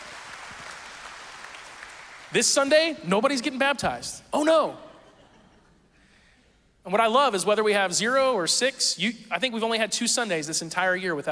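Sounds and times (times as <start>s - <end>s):
audience applauding: 0.0s - 2.4s
speech: 2.3s - 4.9s, 6.8s - 11.3s.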